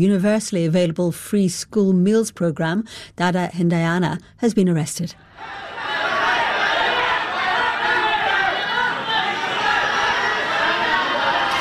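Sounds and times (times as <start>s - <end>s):
speech: 0.0s - 5.7s
large crowd chanting and shouting: 5.2s - 11.5s.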